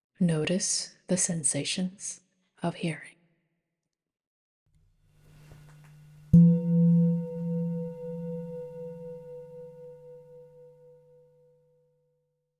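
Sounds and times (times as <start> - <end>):
speech: 0.2 - 3.2, 6.3 - 6.6
meditation bell ringing: 6.0 - 11.0.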